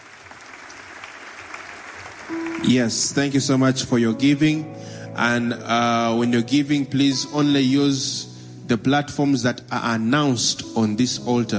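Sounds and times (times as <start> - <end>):
church congregation clapping hands: 0.0 - 3.7
speech: 2.3 - 11.5.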